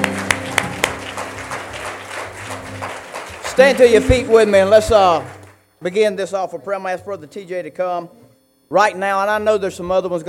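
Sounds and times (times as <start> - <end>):
audience clapping hands in praise: 0.0 - 5.6
speech: 3.6 - 10.2.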